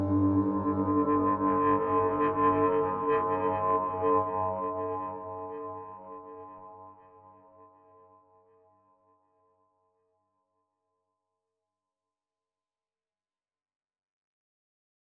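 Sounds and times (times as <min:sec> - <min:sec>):
synth bass: 0:00.0 - 0:01.9
synth pad: 0:00.0 - 0:04.2.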